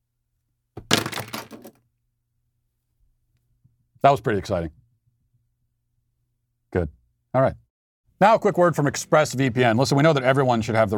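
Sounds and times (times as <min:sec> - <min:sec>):
pens thrown in the air, clattering: 0:00.9 - 0:01.8
speech: 0:04.0 - 0:04.8, 0:06.7 - 0:07.6, 0:08.2 - 0:10.9.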